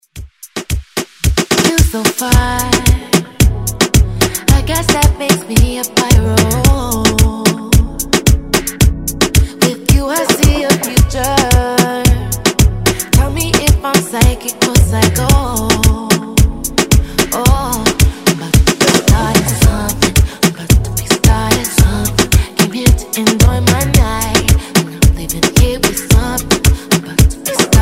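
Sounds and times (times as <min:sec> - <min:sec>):
reggaeton music: 0:00.0 - 0:27.8.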